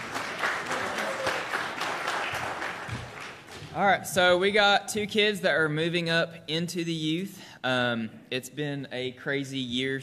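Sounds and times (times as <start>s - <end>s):
audience clapping: 0.0s - 3.9s
speech: 3.8s - 10.0s.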